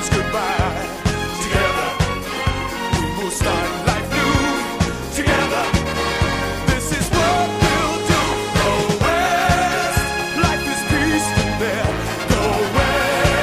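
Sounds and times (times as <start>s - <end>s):
free spins music loop: 0.0s - 13.4s.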